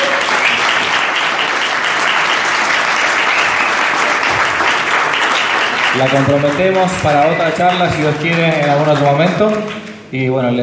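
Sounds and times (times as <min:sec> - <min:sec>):
crowd applause: 0:00.0 - 0:10.1
speech: 0:06.0 - 0:10.6.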